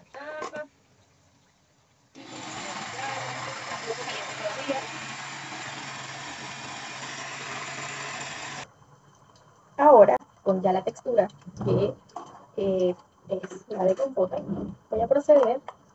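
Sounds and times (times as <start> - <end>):
blender pureeing cooked pears for compote: 2.2 - 8.7
speech: 10.5 - 12.0, 12.6 - 15.7.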